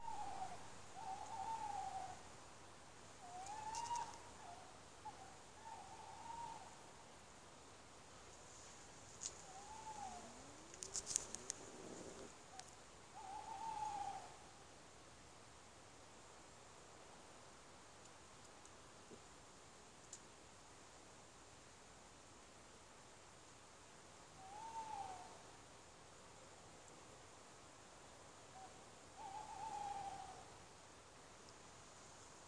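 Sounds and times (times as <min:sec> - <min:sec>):
tawny owl calling: 0:00.0 - 0:02.3, 0:03.2 - 0:06.8, 0:09.3 - 0:14.6, 0:24.4 - 0:25.4, 0:28.5 - 0:30.6.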